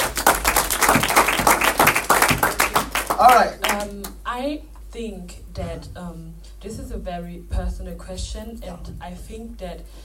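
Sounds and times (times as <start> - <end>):
audience clapping: 0.0 - 4.2
speech: 3.2 - 10.0.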